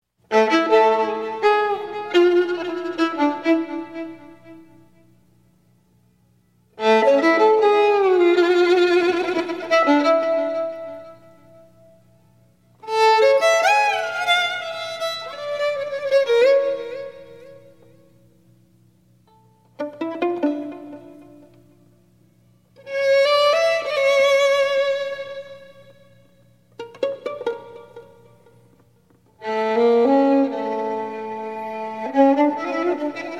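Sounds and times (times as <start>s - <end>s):
instrumental music: 0.2s - 5.2s, 6.7s - 18.3s, 19.2s - 33.3s.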